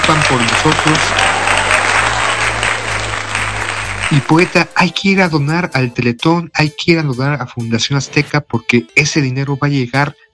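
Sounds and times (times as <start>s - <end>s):
crowd applause: 0.0s - 4.9s
speech: 0.3s - 1.4s, 4.1s - 10.3s.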